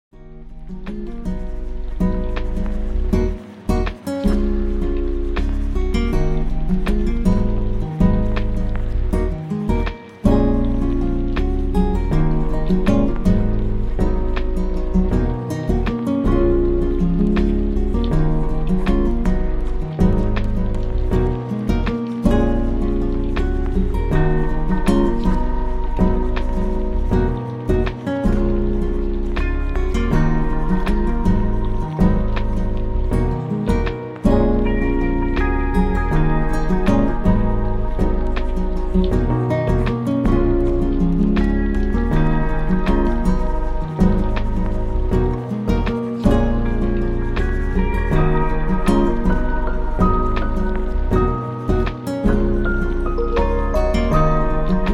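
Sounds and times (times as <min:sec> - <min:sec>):
jazz duo music: 0:00.5 - 0:54.9.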